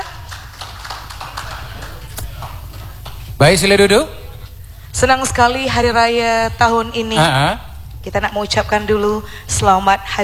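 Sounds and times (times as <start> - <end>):
audience applause: 0.0 - 3.8
speech: 3.4 - 4.2, 5.0 - 10.2.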